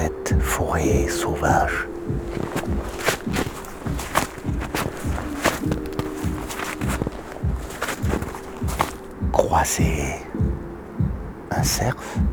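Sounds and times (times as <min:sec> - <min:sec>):
footsteps trampling through snow: 0:00.0 - 0:10.3
speech: 0:00.3 - 0:03.4, 0:09.6 - 0:10.4, 0:11.6 - 0:12.3.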